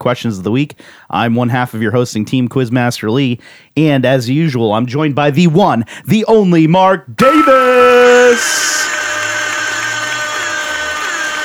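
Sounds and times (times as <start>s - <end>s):
speech: 0.0s - 9.0s
air horn sound effect: 7.2s - 11.4s.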